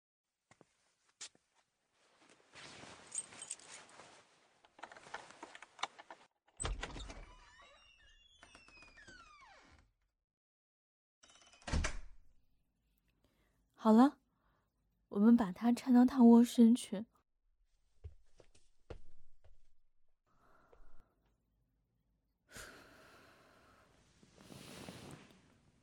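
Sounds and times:
keys rattling at the front door of a home: 3.1s - 3.8s
front door creaking: 6.6s - 10.0s, 11.2s - 12.2s
speech: 13.8s - 14.2s, 15.4s - 17.1s.

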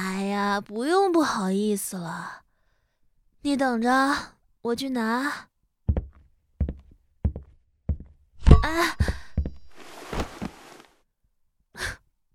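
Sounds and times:
speech: 0.0s - 2.4s, 3.4s - 5.5s, 8.6s - 9.2s
foot kicking corner of chest of drawers: 9.1s - 10.8s.

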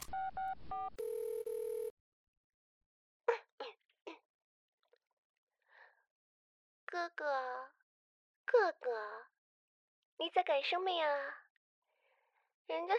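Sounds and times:
telephone dialing beeps: 0.0s - 1.9s
speech: 7.0s - 7.8s, 8.5s - 9.3s, 10.2s - 11.4s, 12.7s - 12.9s.

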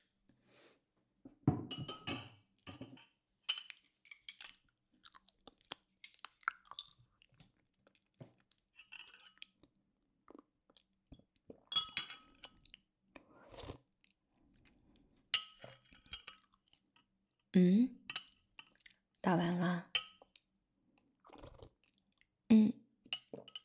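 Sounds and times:
dishes and utensils clinking: 1.6s - 4.6s, 11.7s - 12.6s, 15.4s - 16.5s, 18.1s - 18.8s, 23.2s - 23.6s
person chewing a meal: 4.4s - 9.6s, 13.4s - 14.2s, 18.6s - 19.1s, 21.2s - 22.0s
speech: 17.6s - 18.0s, 19.3s - 19.9s.

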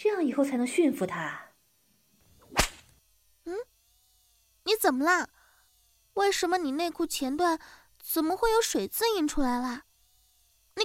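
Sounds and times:
speech: 0.0s - 1.5s, 4.8s - 5.4s, 6.2s - 9.9s
whip lash cracking: 2.4s - 3.0s.

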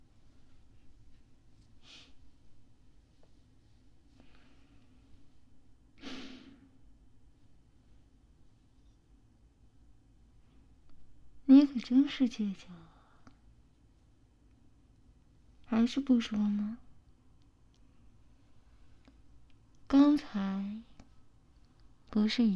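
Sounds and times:
person gasping for air after being allowed to breathe: 6.0s - 6.6s
speech: 11.6s - 12.9s, 15.8s - 16.8s, 19.9s - 20.9s, 22.1s - 22.5s.

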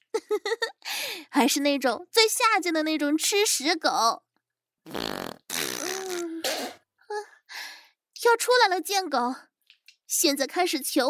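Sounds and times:
speech: 1.4s - 5.2s, 8.2s - 9.5s, 10.1s - 11.0s
sputtering farts: 4.9s - 6.8s.

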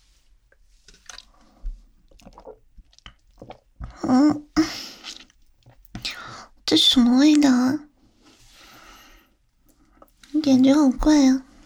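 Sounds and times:
slurping and swallowing a shop's home-brewed drink: 0.9s - 4.0s, 4.6s - 6.0s
gulp of a shop's home-brewed drink: 2.1s - 5.4s
speech: 4.1s - 4.5s, 6.7s - 7.9s, 10.5s - 11.5s.

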